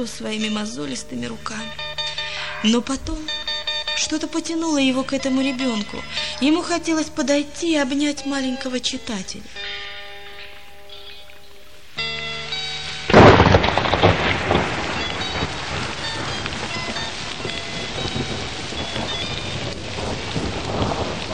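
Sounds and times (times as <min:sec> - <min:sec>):
speech: 0:00.0 - 0:01.9, 0:02.6 - 0:03.4, 0:04.0 - 0:09.6
rain: 0:00.0 - 0:21.3
strong thunderclap: 0:13.0 - 0:21.3.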